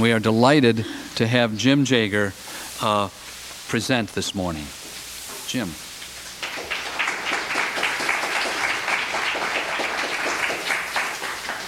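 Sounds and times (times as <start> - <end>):
speech: 0.0 - 4.8, 5.5 - 5.8
crowd applauding: 6.4 - 11.6.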